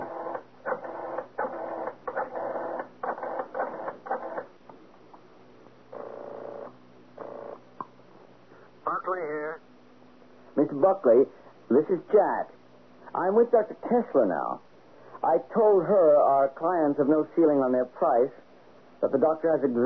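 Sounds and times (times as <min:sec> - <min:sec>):
telephone being dialed: 0:00.0 - 0:04.5
speech: 0:08.9 - 0:09.6, 0:10.6 - 0:12.6, 0:13.2 - 0:18.4, 0:19.0 - 0:19.8.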